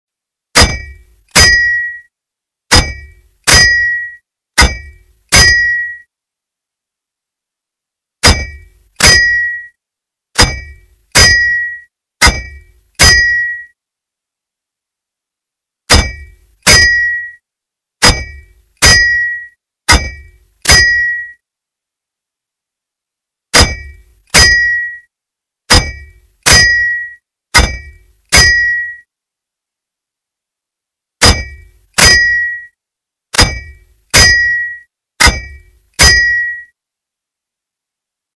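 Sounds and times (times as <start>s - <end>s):
hammer on spike: 0.6s - 2.1s, 2.7s - 6.1s, 8.2s - 9.8s, 10.4s - 13.8s, 15.9s - 17.4s, 18.0s - 21.4s, 23.5s - 25.1s, 25.7s - 29.1s, 31.2s - 36.7s.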